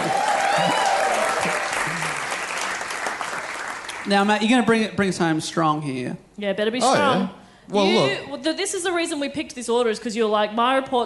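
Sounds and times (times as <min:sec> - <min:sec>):
small audience applause: 0:00.0 - 0:04.2
speech: 0:04.1 - 0:11.0.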